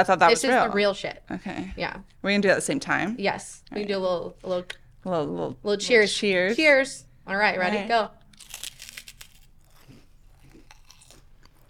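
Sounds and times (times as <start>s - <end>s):
speech: 0.0s - 8.6s
someone biting into a crunchy marshmallow puff snack: 8.3s - 11.6s.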